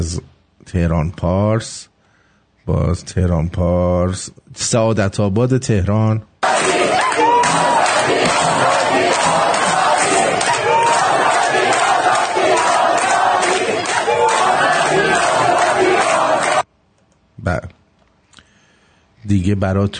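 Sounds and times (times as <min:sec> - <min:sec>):
speech: 0:00.0 - 0:01.9, 0:02.6 - 0:06.3, 0:17.4 - 0:17.8, 0:19.2 - 0:19.9
people shouting: 0:06.4 - 0:16.6
protest crowd chanting slogans in unison: 0:06.4 - 0:16.6.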